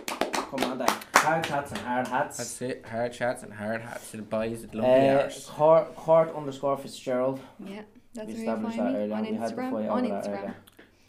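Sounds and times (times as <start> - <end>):
audience applause: 0.0 - 2.1
speech: 0.5 - 10.7.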